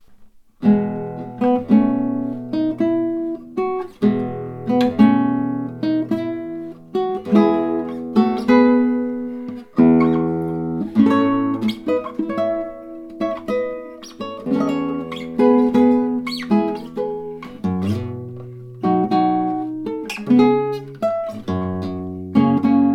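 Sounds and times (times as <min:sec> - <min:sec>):
prelude: 0:00.6 - 0:22.9.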